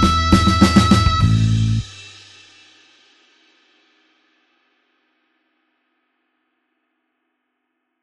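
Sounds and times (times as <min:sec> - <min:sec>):
slow blues harmonica in A: 0:00.0 - 0:01.8.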